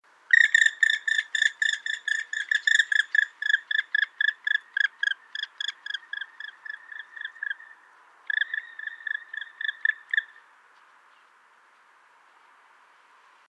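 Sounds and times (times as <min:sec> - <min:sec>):
black woodpecker calling: 0:00.3 - 0:10.5.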